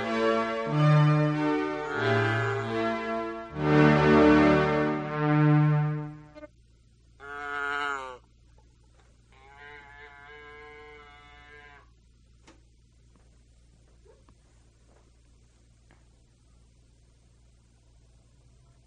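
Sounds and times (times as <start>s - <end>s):
P600 synth strings: 0.0s - 6.5s.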